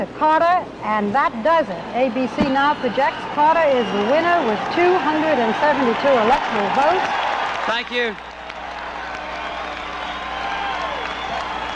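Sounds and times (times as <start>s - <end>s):
speech: 0.0s - 8.3s
large crowd cheering and applauding: 2.7s - 11.7s.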